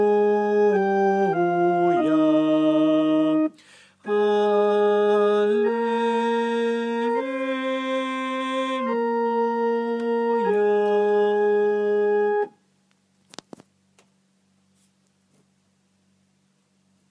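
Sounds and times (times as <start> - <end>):
sopranos singing: 0.0 - 12.5.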